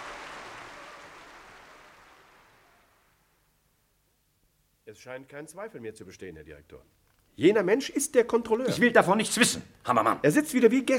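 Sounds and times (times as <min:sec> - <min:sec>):
audience applause: 0:00.0 - 0:03.3
speech: 0:04.9 - 0:10.9.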